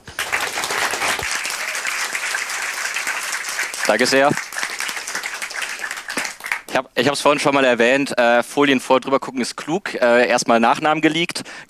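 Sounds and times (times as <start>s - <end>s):
audience applause: 0.0s - 6.8s
speech: 3.9s - 4.4s, 6.8s - 11.6s.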